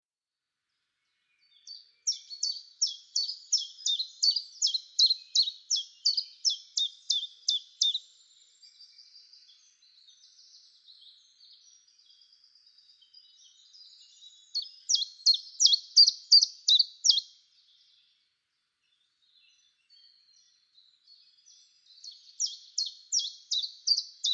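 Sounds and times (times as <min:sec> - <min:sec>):
Common chiffchaff singing high sharp notes: 0:02.1 - 0:08.6, 0:13.8 - 0:17.3, 0:22.0 - 0:24.3.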